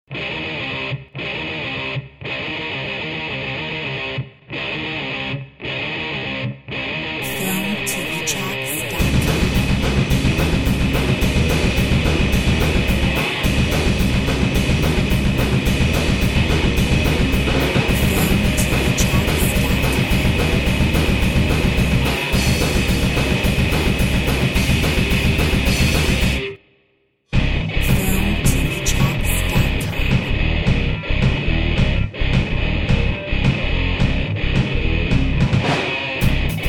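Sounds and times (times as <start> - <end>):
metal music: 0.1 - 26.6, 27.3 - 36.6.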